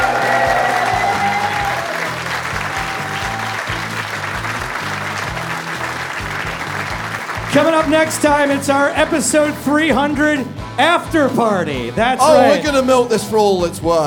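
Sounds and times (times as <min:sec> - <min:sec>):
audience applause: 0:00.0 - 0:08.6
speech: 0:07.6 - 0:14.0.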